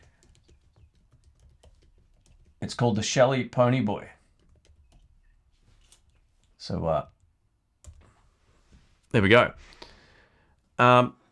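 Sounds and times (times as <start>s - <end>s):
typing on a computer keyboard: 0.0s - 2.6s, 4.3s - 5.2s
speech: 2.6s - 4.2s, 6.7s - 7.1s, 9.1s - 9.8s, 10.8s - 11.2s.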